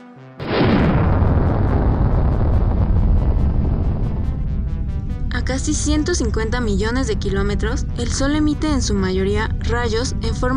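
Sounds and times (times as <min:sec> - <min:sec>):
rocket launch ignition and roar: 0:00.4 - 0:04.6
speech: 0:05.5 - 0:10.5.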